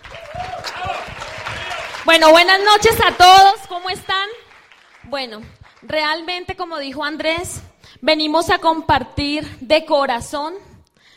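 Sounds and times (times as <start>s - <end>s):
audience applause: 0.0s - 5.9s
speech: 2.1s - 4.4s, 5.1s - 10.7s.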